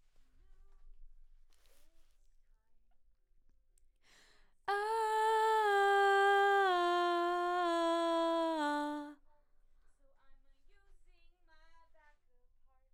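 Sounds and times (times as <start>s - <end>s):
background vocals: 4.7s - 9.2s.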